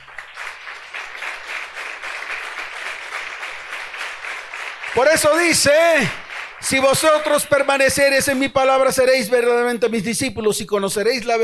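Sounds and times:
audience applause: 0:00.0 - 0:07.8
speech: 0:05.0 - 0:11.4.

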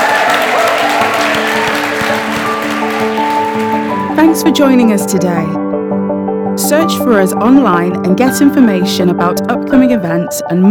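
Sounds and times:
audience applause: 0:00.0 - 0:04.2
speech: 0:04.4 - 0:05.6, 0:06.6 - 0:10.7.

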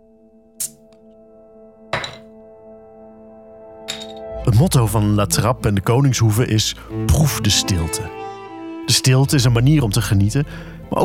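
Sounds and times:
beer bottles popping open: 0:02.0 - 0:02.3
speech: 0:04.4 - 0:08.3, 0:08.9 - 0:11.0.

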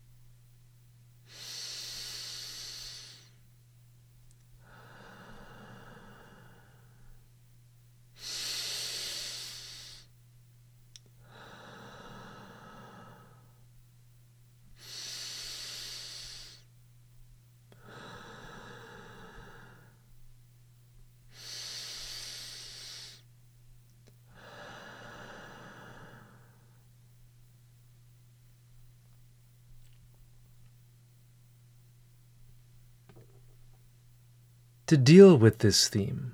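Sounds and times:
faint steady hum: 0:00.0 - 0:36.3
slow guided breathing exercise: 0:01.3 - 0:03.4, 0:04.6 - 0:07.2, 0:08.2 - 0:10.1, 0:11.2 - 0:13.6, 0:14.8 - 0:16.7, 0:17.8 - 0:20.1, 0:21.3 - 0:23.3, 0:24.3 - 0:26.8
speech: 0:34.9 - 0:36.3.

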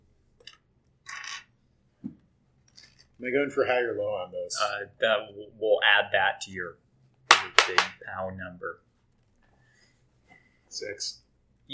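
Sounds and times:
speech: 0:03.2 - 0:06.8, 0:07.7 - 0:08.9, 0:10.7 - 0:11.7
six-sided die rolling and clattering: 0:07.3 - 0:08.0.

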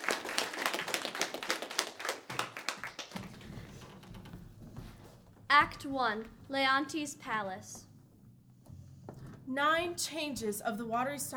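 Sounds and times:
play audience applause welcoming the performers: 0:00.0 - 0:03.4
speech: 0:05.5 - 0:07.9, 0:09.5 - 0:11.3.

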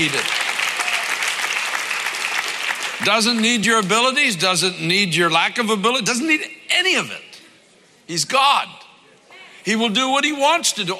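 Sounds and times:
speech: 0:00.0 - 0:00.3, 0:03.0 - 0:07.3, 0:08.1 - 0:08.8, 0:09.6 - 0:10.9
audience clapping: 0:00.0 - 0:04.1.

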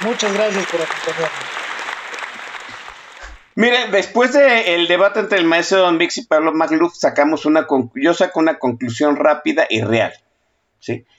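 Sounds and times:
speech: 0:00.0 - 0:01.6, 0:03.6 - 0:10.2, 0:10.8 - 0:11.1
audience applause: 0:00.0 - 0:03.6.

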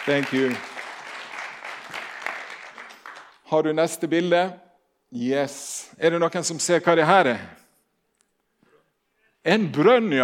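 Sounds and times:
speech: 0:00.0 - 0:00.7, 0:03.5 - 0:07.6, 0:09.4 - 0:10.2
audience applause: 0:00.0 - 0:03.4.

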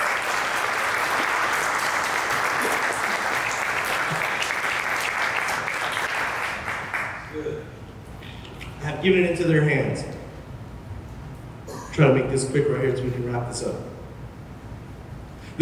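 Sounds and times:
audience applauding: 0:00.0 - 0:07.3
speech: 0:09.0 - 0:10.1, 0:12.0 - 0:13.9.

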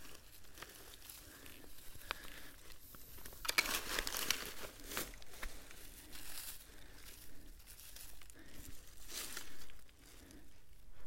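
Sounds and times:
steps through dry leaves and twigs in a forest: 0:03.4 - 0:09.6.

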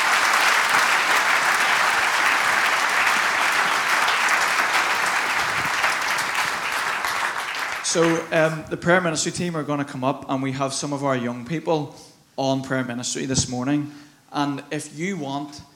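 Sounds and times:
audience applause: 0:00.0 - 0:08.4
speech: 0:07.9 - 0:15.7.

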